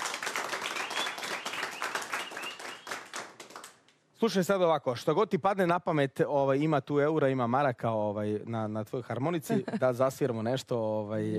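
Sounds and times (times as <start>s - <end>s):
audience applause greeting an accordionist at a tavern-style table: 0.0s - 3.8s
speech: 4.2s - 11.3s.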